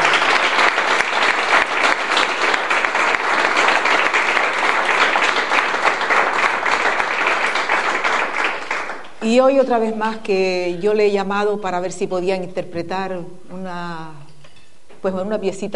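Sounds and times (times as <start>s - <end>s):
audience applause: 0.0s - 9.2s
speech: 9.3s - 14.2s, 15.0s - 15.7s.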